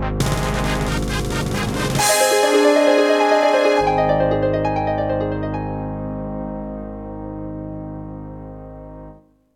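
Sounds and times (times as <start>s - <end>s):
fanfare: 0.2s - 6.8s.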